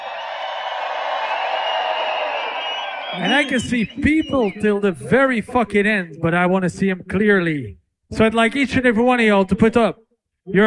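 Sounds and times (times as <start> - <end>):
concert crowd cheering: 0.0 - 4.7
speech: 3.1 - 10.6.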